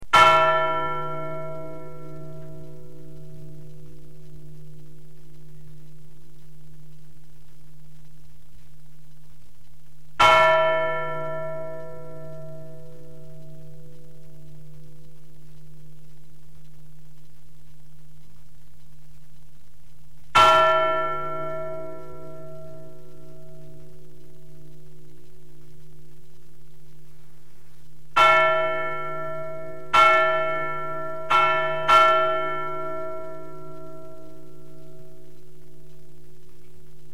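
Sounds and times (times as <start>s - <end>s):
bell: 0.1s - 7.1s, 10.2s - 17.4s, 20.3s - 26.2s, 28.1s - 36.7s.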